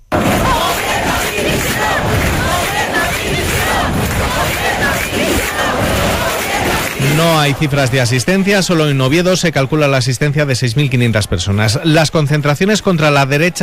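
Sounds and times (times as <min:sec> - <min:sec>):
crowd shouting protest chants: 0:00.1 - 0:08.6
speech: 0:07.2 - 0:13.6.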